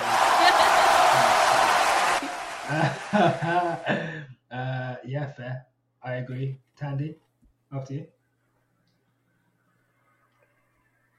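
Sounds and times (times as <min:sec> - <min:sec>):
people chuckling: 0:00.0 - 0:01.5, 0:02.2 - 0:04.2
people clapping: 0:00.0 - 0:04.0
speech: 0:02.8 - 0:04.2, 0:05.1 - 0:08.2.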